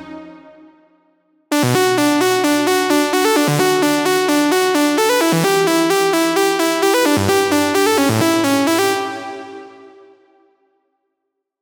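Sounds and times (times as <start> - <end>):
psytrance trance music: 1.6 - 10.2.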